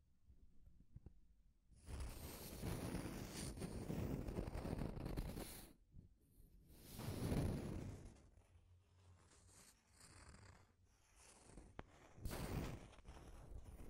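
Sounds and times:
faint scrapes: 1.9s - 5.8s, 6.7s - 13.8s.

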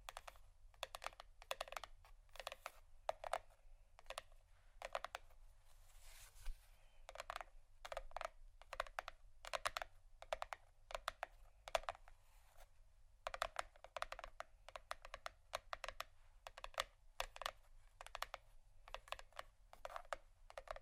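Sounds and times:
soft tapping on cardboard: 0.0s - 20.8s
scratchy rustle: 5.6s - 6.8s.

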